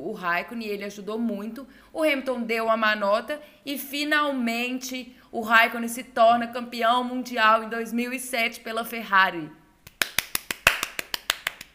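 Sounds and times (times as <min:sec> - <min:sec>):
speech: 0:00.1 - 0:09.6
single pair of hands clapping briskly: 0:09.8 - 0:11.7.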